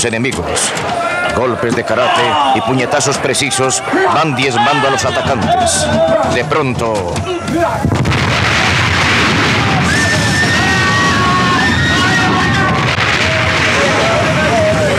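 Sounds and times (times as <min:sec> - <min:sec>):
speech: 0:00.0 - 0:08.7
boiler explosion aboard ship: 0:07.7 - 0:14.9.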